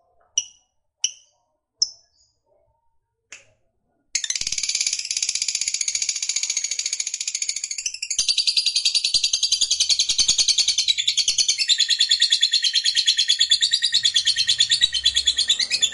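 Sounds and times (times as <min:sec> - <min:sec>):
lovebird song: 0:04.2 - 0:15.9.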